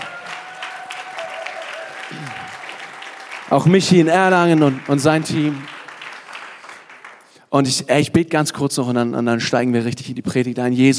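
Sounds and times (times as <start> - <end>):
audience applause: 0.0 - 7.4
speech: 2.1 - 2.6, 3.5 - 5.7, 7.5 - 10.9.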